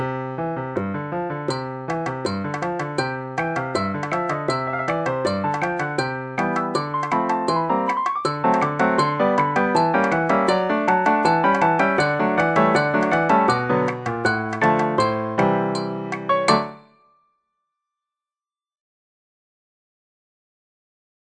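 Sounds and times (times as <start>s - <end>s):
frolicsome polka arrangement: 0.8s - 16.8s.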